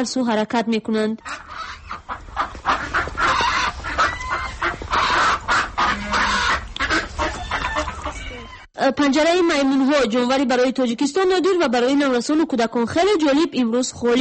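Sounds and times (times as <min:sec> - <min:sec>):
speech: 0:00.0 - 0:01.5, 0:08.8 - 0:14.1
flock of ducks calling at a snowy zoo: 0:01.2 - 0:08.7.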